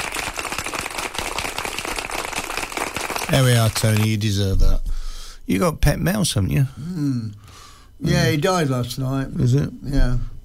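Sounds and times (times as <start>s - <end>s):
round of applause: 0.0s - 4.1s
speech: 3.3s - 4.8s, 5.5s - 10.4s.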